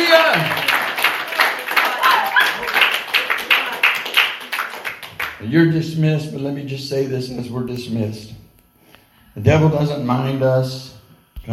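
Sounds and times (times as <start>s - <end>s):
audience hand clapping: 0.0s - 5.5s
speech: 5.5s - 8.4s, 9.4s - 11.5s.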